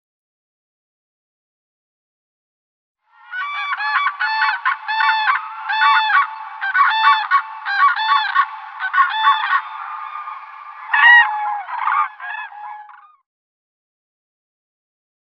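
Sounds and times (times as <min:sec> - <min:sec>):
common crane trumpeting calls: 0:03.2 - 0:13.1.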